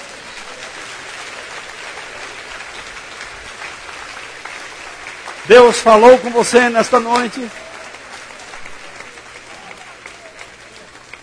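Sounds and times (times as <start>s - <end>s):
audience applauding: 0.0s - 11.2s
speech: 5.5s - 7.6s.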